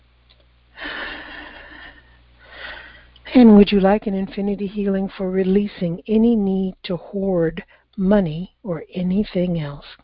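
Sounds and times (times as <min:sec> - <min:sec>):
deep breath: 0:00.8 - 0:03.2
speech: 0:03.4 - 0:10.0.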